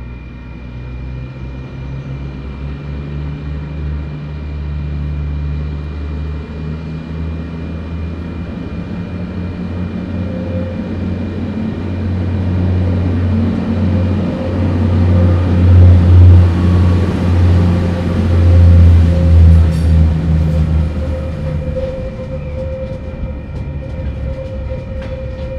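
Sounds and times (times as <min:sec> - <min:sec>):
train crossing: 0:00.0 - 0:25.5.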